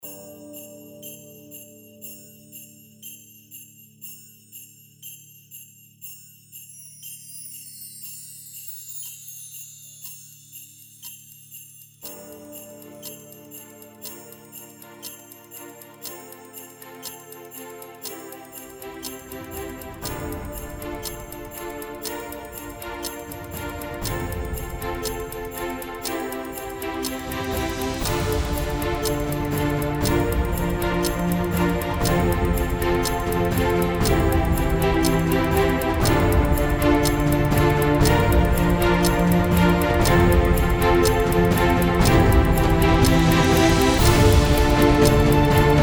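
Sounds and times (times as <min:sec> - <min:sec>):
epic inspirational New Year countdown music: 0:18.3 - 0:45.8.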